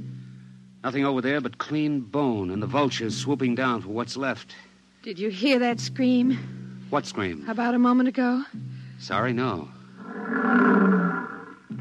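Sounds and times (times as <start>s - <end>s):
speech: 0.8s - 9.8s
lions roaring: 10.0s - 11.8s.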